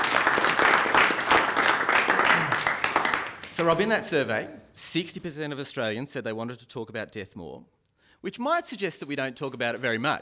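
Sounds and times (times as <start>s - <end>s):
audience applause: 0.0s - 4.3s
speech: 3.6s - 10.2s.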